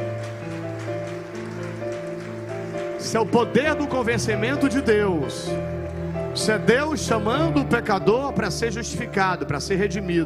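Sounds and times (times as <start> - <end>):
church audience applauding: 0.0 - 6.1
sustained keyboard or organ chords: 0.0 - 10.2
speech: 3.0 - 5.8, 6.4 - 10.2.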